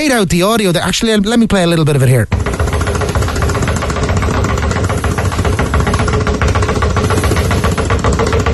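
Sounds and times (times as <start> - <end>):
speech: 0.0 - 2.5
two basketballs bounced rapidly near the ground: 2.3 - 8.5.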